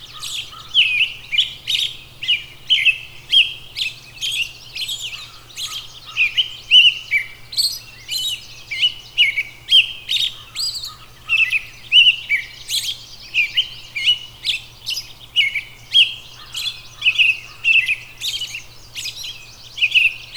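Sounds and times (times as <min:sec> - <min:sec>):
robin singing: 0:00.0 - 0:20.3.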